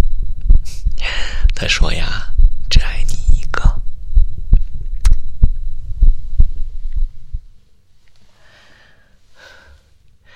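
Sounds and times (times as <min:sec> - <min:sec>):
heartbeat: 0:00.0 - 0:07.6
faint hum: 0:00.0 - 0:10.3
speech: 0:01.6 - 0:02.3.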